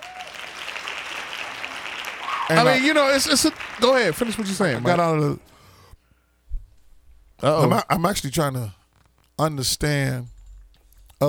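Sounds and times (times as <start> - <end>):
hand claps: 0.0 - 5.0
speech: 2.5 - 5.5, 7.4 - 8.8, 9.4 - 10.3.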